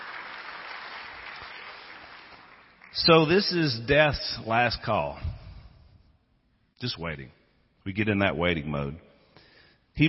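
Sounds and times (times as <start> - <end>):
audience hand clapping: 0.0 - 3.2
speech: 3.0 - 5.4, 6.8 - 9.1.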